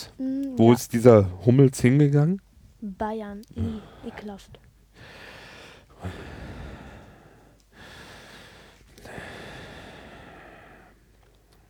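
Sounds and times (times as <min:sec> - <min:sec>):
speech: 0:00.0 - 0:04.6, 0:06.0 - 0:06.3
person breathing heavily on purpose: 0:03.6 - 0:04.4, 0:05.0 - 0:11.1.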